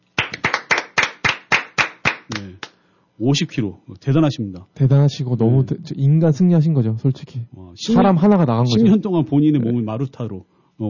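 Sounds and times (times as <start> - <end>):
clapping: 0.2 - 2.8
speech: 2.3 - 10.8.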